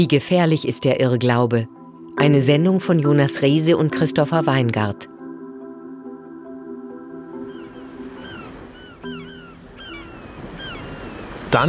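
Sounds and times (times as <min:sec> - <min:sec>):
speech: 0:00.0 - 0:05.1
sustained musical tones: 0:00.3 - 0:10.5
Baltic Sea waves rushing gently: 0:05.8 - 0:11.6
high chirping calls: 0:07.3 - 0:11.4.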